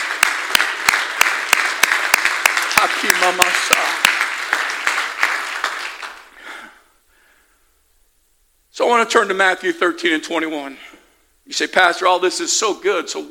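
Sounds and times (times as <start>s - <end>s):
audience clapping hands: 0.0s - 6.7s
speech: 3.0s - 3.8s, 8.9s - 10.8s, 11.5s - 13.2s.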